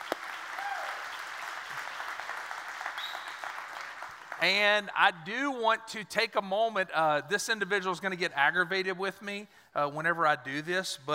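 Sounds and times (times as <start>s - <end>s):
church congregation applauding: 0.0s - 4.9s
speech: 4.4s - 11.1s.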